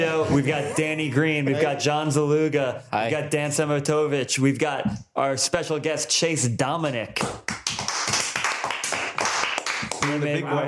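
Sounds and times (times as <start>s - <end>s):
speech: 0.0s - 7.6s, 10.1s - 10.6s
people clapping for a guest: 7.2s - 10.4s.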